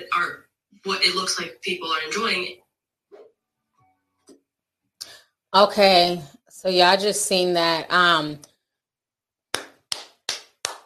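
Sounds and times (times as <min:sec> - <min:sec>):
speech: 0:00.2 - 0:02.6, 0:05.5 - 0:08.5
hand clapping: 0:09.5 - 0:10.8.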